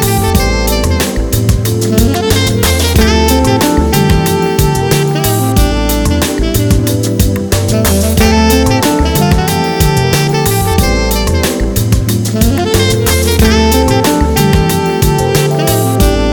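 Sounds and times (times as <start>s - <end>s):
jazz saxophone mix: 0.0s - 16.3s.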